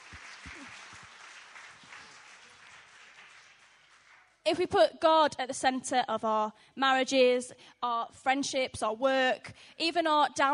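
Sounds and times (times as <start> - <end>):
round of applause: 0.0 - 4.5
speech: 4.5 - 10.5.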